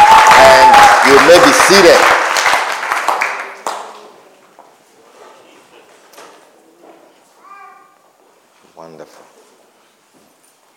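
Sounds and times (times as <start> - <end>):
audience clapping hands: 0.0 - 4.2
speech: 1.3 - 2.2.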